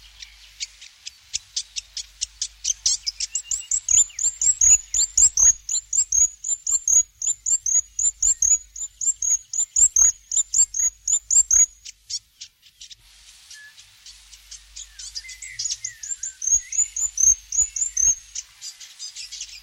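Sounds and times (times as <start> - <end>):
faint bird calls: 0.1 - 19.6
New Zealand fantail squeaky chirping song: 3.4 - 11.7, 15.6 - 18.2.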